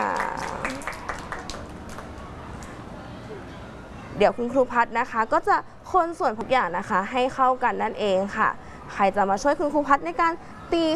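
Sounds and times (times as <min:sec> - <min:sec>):
scattered applause: 0:00.0 - 0:02.8
speech: 0:04.2 - 0:10.9.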